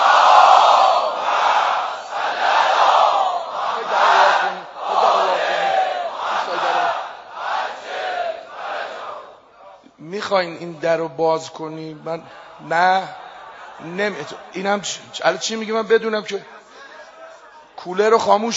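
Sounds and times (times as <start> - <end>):
crowd loudly chanting salawat blessing: 0.0 - 9.8, 12.0 - 15.1
speech: 10.3 - 13.2, 13.8 - 16.6, 17.8 - 18.5.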